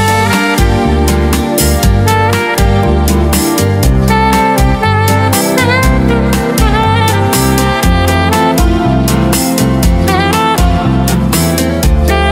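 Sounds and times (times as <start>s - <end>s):
saxophone: 0.0s - 12.2s.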